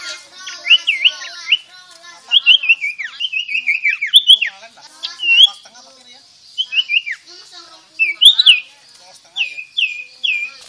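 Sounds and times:
Sirtu whistling song: 0:00.4 - 0:05.7, 0:06.5 - 0:07.3, 0:08.0 - 0:08.8, 0:09.4 - 0:10.6.

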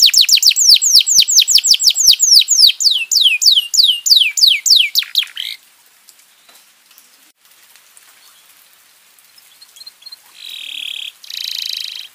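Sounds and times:
domestic canary song: 0:00.0 - 0:05.6, 0:09.3 - 0:12.1.

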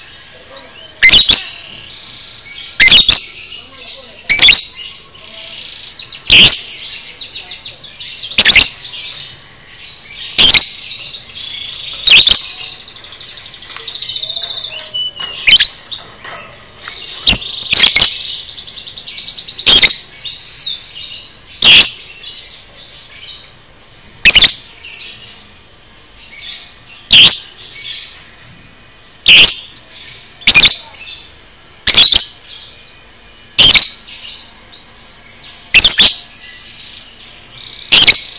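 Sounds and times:
lovebird chirping and twittering: 0:00.8 - 0:22.5, 0:24.2 - 0:25.0, 0:26.4 - 0:28.0, 0:29.2 - 0:29.8, 0:30.4 - 0:31.1, 0:31.8 - 0:32.5, 0:33.5 - 0:34.9, 0:35.6 - 0:36.8, 0:37.6 - 0:38.3
lovebird screeches: 0:01.0 - 0:01.6, 0:02.8 - 0:03.4, 0:04.3 - 0:04.7, 0:06.3 - 0:06.7, 0:08.4 - 0:08.8, 0:10.4 - 0:10.8, 0:12.0 - 0:12.8, 0:13.9 - 0:16.1, 0:17.2 - 0:18.3, 0:19.6 - 0:20.0, 0:21.6 - 0:22.0, 0:24.2 - 0:24.6, 0:27.1 - 0:27.4, 0:30.4 - 0:31.0, 0:31.8 - 0:32.4, 0:33.6 - 0:34.0, 0:35.7 - 0:36.3, 0:37.9 - 0:38.3.

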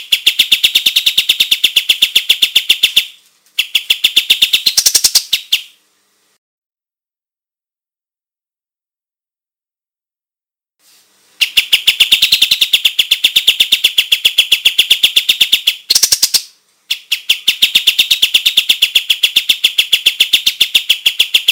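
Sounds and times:
white-shouldered triller calling: 0:00.0 - 0:05.8, 0:11.4 - 0:21.5.

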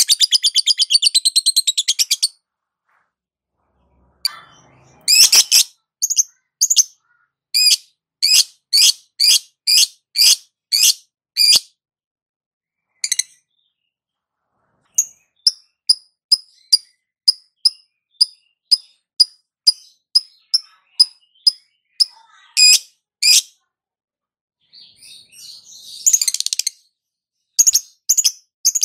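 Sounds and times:
lovebird chattering: 0:00.0 - 0:02.3, 0:05.0 - 0:07.0, 0:07.6 - 0:11.6, 0:15.0 - 0:23.5.

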